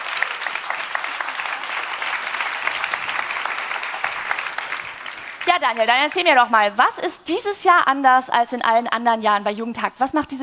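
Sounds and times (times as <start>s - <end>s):
audience applause: 0.0s - 6.4s
speech: 5.5s - 10.4s.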